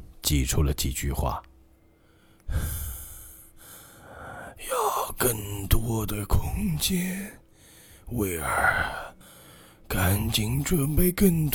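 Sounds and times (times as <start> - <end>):
speech: 0.3 - 1.5, 5.2 - 7.4, 8.1 - 9.1, 9.9 - 11.5
heavy wheezing panting breath: 2.0 - 4.7, 7.5 - 9.9.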